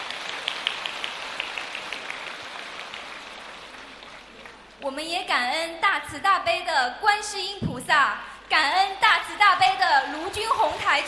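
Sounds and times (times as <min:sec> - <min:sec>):
audience applause: 0:00.0 - 0:04.8, 0:09.5 - 0:11.0
speech: 0:04.8 - 0:11.0.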